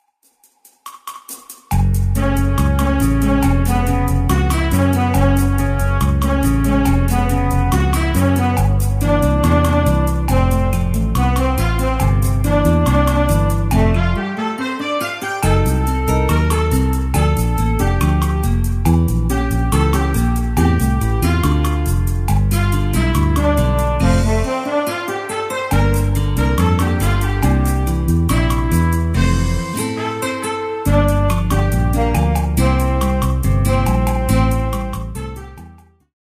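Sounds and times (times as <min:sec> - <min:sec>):
bossa nova music: 0:00.9 - 0:36.1.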